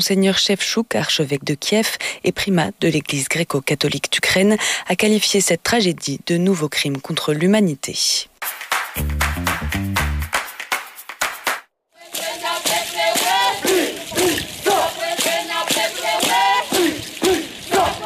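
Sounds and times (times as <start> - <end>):
speech: 0.0 - 10.1
clap-like accents: 8.4 - 11.7
rhythmic percussive beats: 8.4 - 13.4
traditional Kanak group dance chanting in Nouméa: 12.0 - 18.0.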